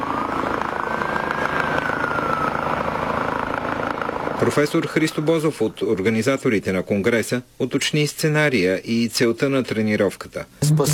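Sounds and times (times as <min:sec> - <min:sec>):
air ambulance helicopter rotor wash and engine drone: 0:00.0 - 0:05.5
speech: 0:04.4 - 0:10.9.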